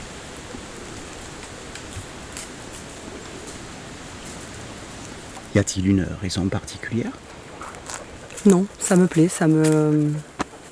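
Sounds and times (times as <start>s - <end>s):
wind in the trees and leaves: 0.0s - 10.7s
speech: 5.6s - 7.4s, 8.4s - 10.3s.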